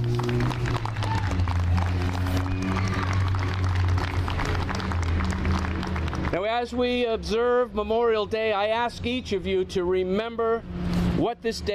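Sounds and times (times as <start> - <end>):
audience applause: 0.0 - 6.4
low constant hum: 0.0 - 11.7
speech: 6.6 - 11.7.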